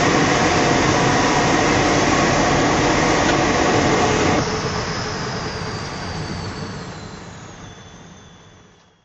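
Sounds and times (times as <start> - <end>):
Datsun 240Z engine during rally drive: 0.0 - 5.6.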